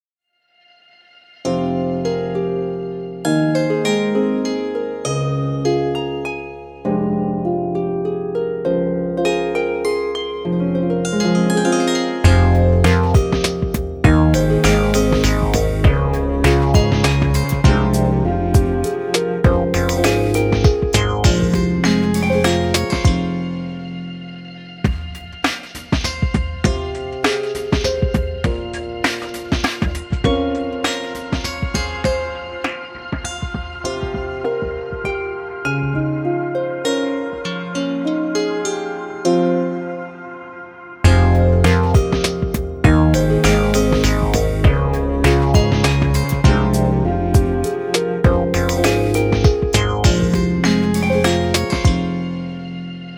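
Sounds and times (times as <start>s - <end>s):
harp: 0.7s - 53.1s.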